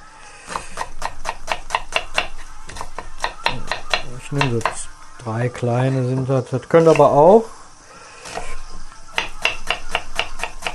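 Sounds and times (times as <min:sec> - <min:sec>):
knife chopping an onion on a cutting board: 0:00.5 - 0:04.9, 0:08.3 - 0:10.7
speech: 0:04.3 - 0:07.6.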